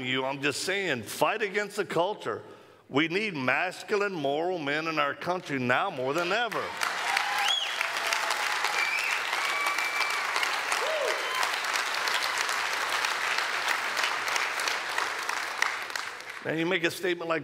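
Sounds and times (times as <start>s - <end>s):
speech: 0.0s - 6.9s, 16.4s - 17.4s
church audience applause: 6.2s - 16.5s
faint high cheers: 6.6s - 11.8s.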